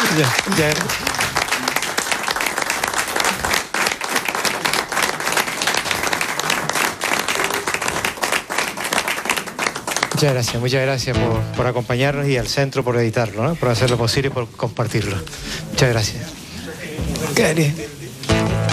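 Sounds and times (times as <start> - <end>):
applause: 0.0 - 11.1
speech: 0.2 - 1.2, 10.2 - 16.3, 17.4 - 18.0.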